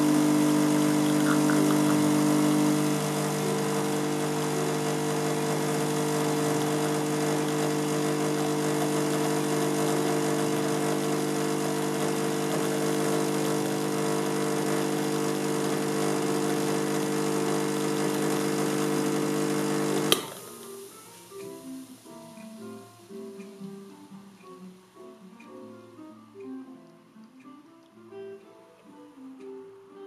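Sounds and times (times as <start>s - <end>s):
espresso machine pump droning through a bottomless portafilter: 0.0s - 20.4s.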